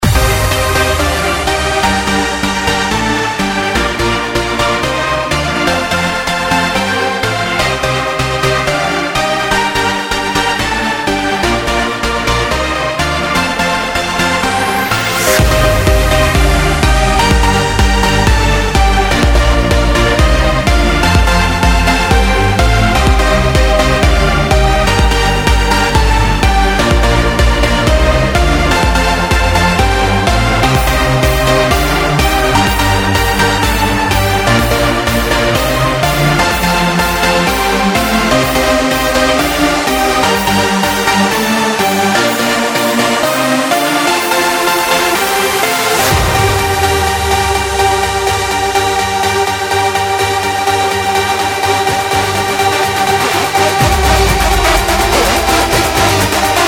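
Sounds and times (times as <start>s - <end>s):
dance music tracks: 0.0s - 56.6s.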